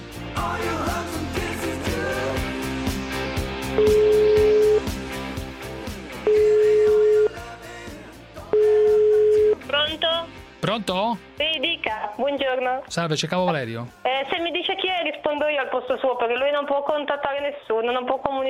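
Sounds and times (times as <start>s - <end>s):
rhythmic music: 0.0s - 18.4s
ringback tones of an outgoing call to a mobile phone: 3.8s - 4.9s, 6.3s - 7.4s, 8.5s - 9.7s
speech: 10.8s - 11.3s, 12.4s - 18.4s.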